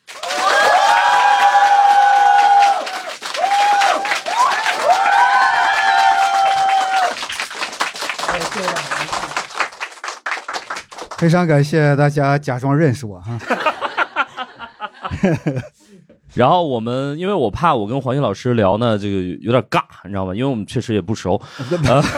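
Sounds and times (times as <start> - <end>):
audience applause: 0.0 - 11.4
speech: 11.2 - 13.8, 15.2 - 22.1
laughter: 13.3 - 15.9, 21.6 - 22.1.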